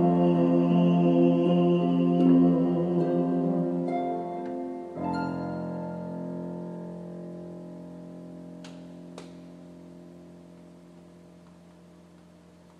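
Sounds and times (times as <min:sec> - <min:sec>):
wedding music for unity candle: 0:00.0 - 0:07.4.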